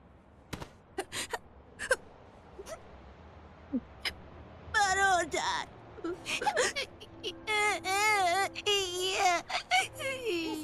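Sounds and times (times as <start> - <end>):
boy crying and wailing: 4.8 - 10.6.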